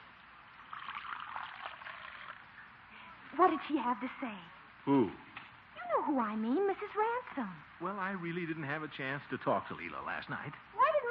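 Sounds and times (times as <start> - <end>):
coffee pouring into a cup: 0.6 - 2.5
speech: 3.4 - 5.3, 5.9 - 10.7.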